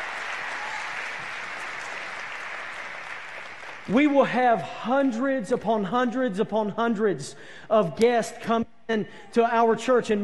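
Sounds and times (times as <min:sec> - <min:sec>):
hand clapping: 0:00.0 - 0:04.1
speech: 0:03.9 - 0:10.2.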